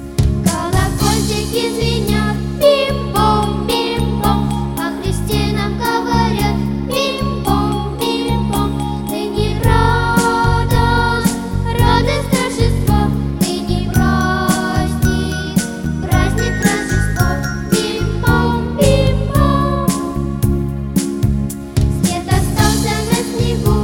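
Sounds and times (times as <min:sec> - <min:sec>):
children's song: 0:00.4 - 0:20.6, 0:21.8 - 0:23.8.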